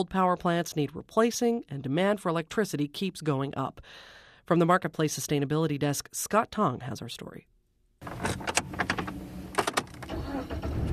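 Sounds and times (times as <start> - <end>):
speech: 0.0 - 8.4
getting into car: 8.0 - 10.9.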